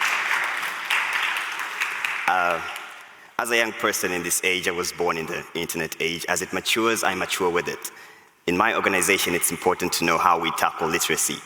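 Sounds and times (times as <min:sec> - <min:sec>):
applause: 0:00.0 - 0:03.3
speech: 0:02.3 - 0:02.8, 0:03.4 - 0:11.4.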